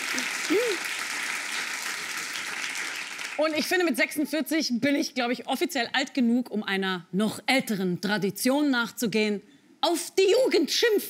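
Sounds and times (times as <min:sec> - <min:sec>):
audience applause: 0:00.0 - 0:03.6
speech: 0:03.4 - 0:11.0.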